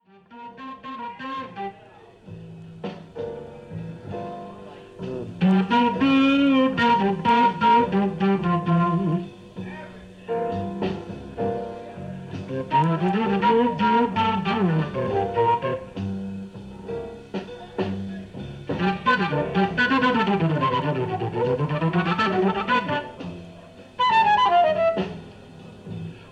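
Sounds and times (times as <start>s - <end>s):
blues music: 0.0s - 26.3s.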